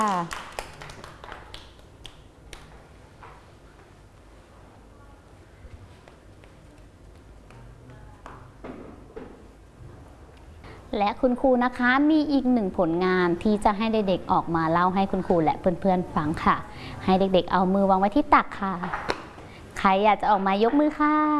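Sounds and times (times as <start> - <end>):
speech: 0.0 - 0.5, 10.9 - 19.1, 19.8 - 21.3
children clapping hands: 0.0 - 2.7.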